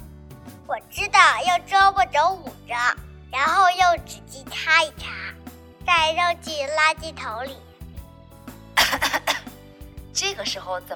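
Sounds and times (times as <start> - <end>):
speech: 0.7 - 7.7, 10.2 - 10.9
coughing: 8.8 - 9.6.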